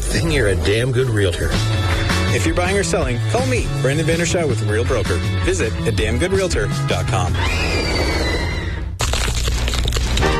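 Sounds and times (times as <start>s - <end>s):
speech: 0.2s - 8.1s
crunch of biting crispy chicken wings: 9.0s - 10.3s.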